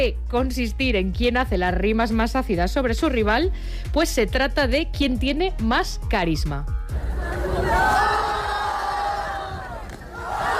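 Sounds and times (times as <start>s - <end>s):
speech: 0.0s - 8.0s
crowd cheering and booing at street battle: 6.9s - 10.5s.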